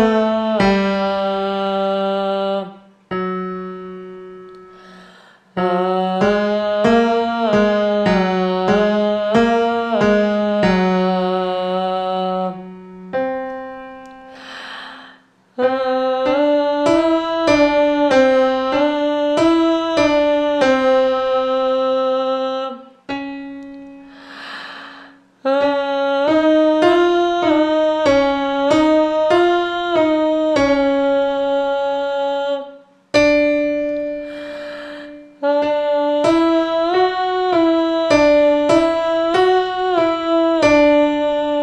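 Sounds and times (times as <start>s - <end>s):
voice: 0.0s - 2.8s, 5.6s - 12.6s, 15.6s - 22.9s, 25.4s - 32.8s, 34.3s - 41.6s
full piano: 0.0s - 41.6s.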